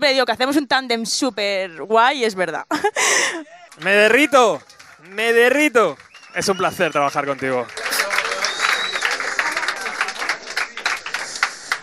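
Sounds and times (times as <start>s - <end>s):
speech: 0.0s - 7.9s
laughter: 2.7s - 4.4s, 7.4s - 11.8s
audience applause: 3.6s - 11.8s.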